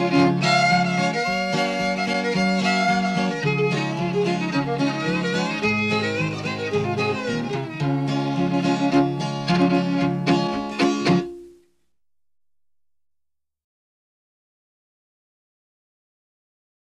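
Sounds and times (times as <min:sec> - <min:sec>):
blues music: 0:00.0 - 0:11.8.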